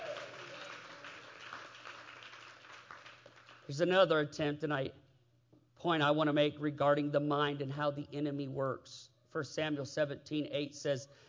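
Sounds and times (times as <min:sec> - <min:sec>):
audience clapping hands: 0:00.0 - 0:03.8
speech: 0:03.7 - 0:05.0, 0:05.8 - 0:11.2.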